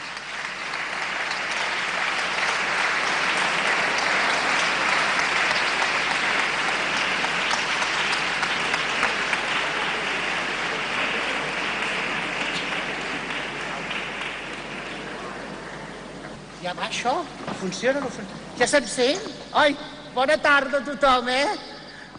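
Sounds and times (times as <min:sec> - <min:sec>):
audience applause: 0:00.0 - 0:16.2
speech: 0:16.7 - 0:21.7.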